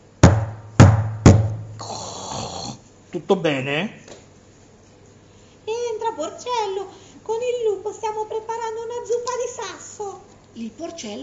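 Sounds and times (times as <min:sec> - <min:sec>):
knocking on a door: 0:00.2 - 0:01.8
speech: 0:03.1 - 0:04.0, 0:06.2 - 0:11.2.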